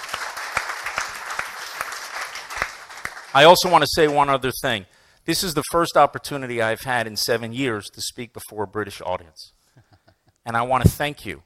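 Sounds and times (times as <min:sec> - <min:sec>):
audience round of applause: 0:00.0 - 0:04.2
speech: 0:03.4 - 0:09.6, 0:10.4 - 0:11.4.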